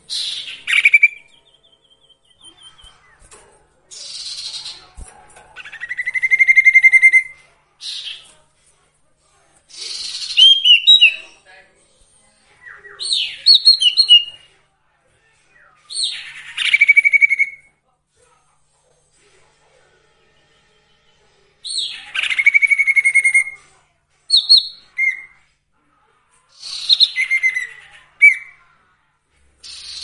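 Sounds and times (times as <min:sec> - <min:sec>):
sirtu song of trills and chirps: 0:00.0 - 0:05.0, 0:05.6 - 0:08.3, 0:09.7 - 0:11.4, 0:12.4 - 0:14.5, 0:15.5 - 0:17.7, 0:20.9 - 0:23.6, 0:24.3 - 0:25.4, 0:26.6 - 0:28.6.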